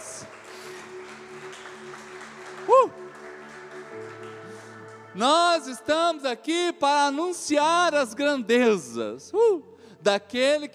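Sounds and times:
audience applause: 0.0s - 5.7s
speech: 5.2s - 10.7s.

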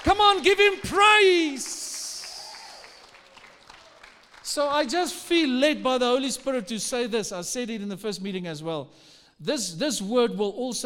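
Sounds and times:
audience clapping: 0.0s - 5.2s
speech: 0.1s - 1.8s, 4.5s - 10.8s.

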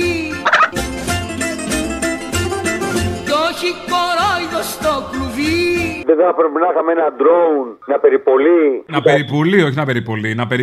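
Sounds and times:
tonal music-like backdrop: 0.0s - 6.0s
bird gobbling like a turkey: 0.4s - 0.8s
speech: 4.6s - 10.6s.

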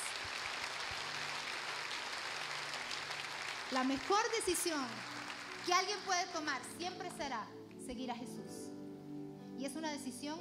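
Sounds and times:
audience applause: 0.0s - 6.1s
speech: 3.7s - 8.5s, 9.6s - 10.3s.

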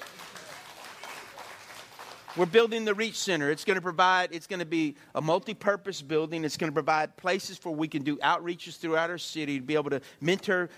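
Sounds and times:
audience applause: 0.0s - 2.8s
speech: 2.4s - 10.7s.

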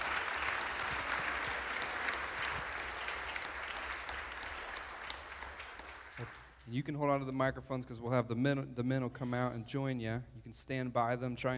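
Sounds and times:
audience applause: 0.0s - 6.6s
speech: 6.2s - 11.5s.

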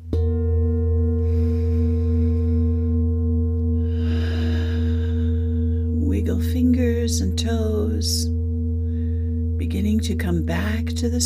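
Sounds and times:
Tibetan singing bowl ringing: 0.0s - 11.2s
soft breathy noise: 1.0s - 5.9s
speech: 6.3s - 8.3s, 9.7s - 11.2s.

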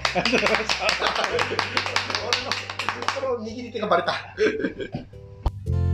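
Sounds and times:
several people clapping: 0.0s - 3.5s
laughter: 0.0s - 5.1s
speech: 0.1s - 5.8s.

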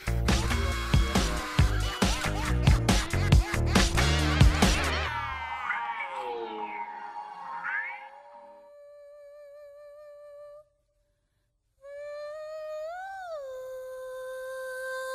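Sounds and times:
laughter: 0.3s - 5.6s
podcast jingle: 4.0s - 8.7s.

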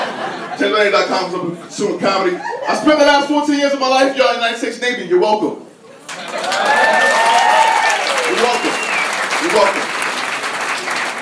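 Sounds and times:
laughter: 0.0s - 1.2s
speech: 0.6s - 5.6s, 9.4s - 9.9s
audience applause: 6.0s - 11.2s.

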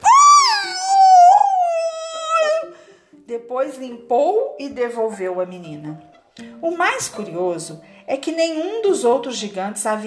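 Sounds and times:
howl of pain: 0.0s - 2.8s
speech: 3.5s - 10.0s.

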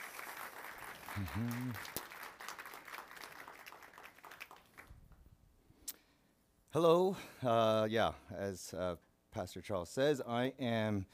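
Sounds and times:
round of applause: 0.0s - 5.0s
speech: 1.2s - 2.0s, 6.8s - 11.1s.

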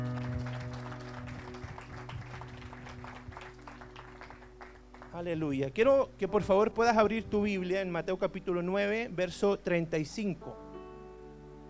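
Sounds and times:
audience applause: 0.0s - 5.2s
speech: 5.2s - 10.6s.

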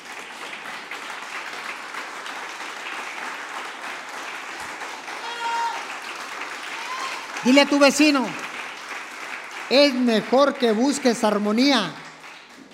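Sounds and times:
audience applause: 0.0s - 12.7s
speech: 7.4s - 8.4s, 9.7s - 12.0s.

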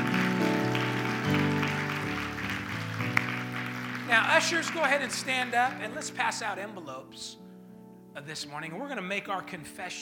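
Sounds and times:
audience clapping: 0.0s - 6.2s
speech: 4.1s - 7.4s, 8.2s - 10.0s.

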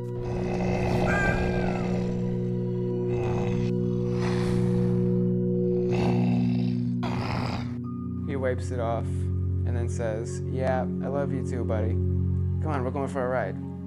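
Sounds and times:
giant animal's big burp: 0.1s - 5.0s, 5.8s - 7.8s
speech: 8.5s - 13.7s.

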